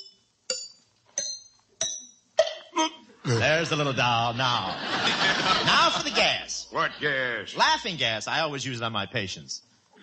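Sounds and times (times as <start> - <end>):
tooth struck lightly with a hammer: 0.0 - 2.6
speech: 2.8 - 9.7
laughter: 3.3 - 7.4.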